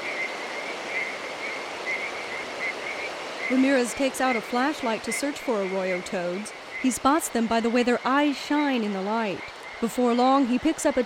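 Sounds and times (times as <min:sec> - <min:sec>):
dense chorus of tree frogs at dusk: 0:00.0 - 0:11.0
speech: 0:03.5 - 0:11.0.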